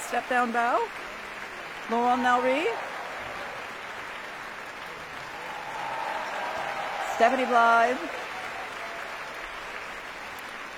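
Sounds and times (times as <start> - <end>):
cast applauding the chorus: 0.0 - 10.7
speech: 0.1 - 1.1, 1.9 - 2.9, 7.2 - 8.2.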